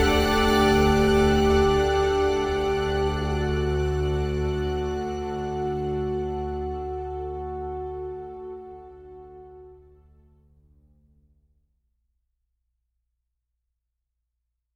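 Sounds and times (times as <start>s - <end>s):
dulcimer: 0.0s - 7.2s
strings: 0.0s - 9.3s.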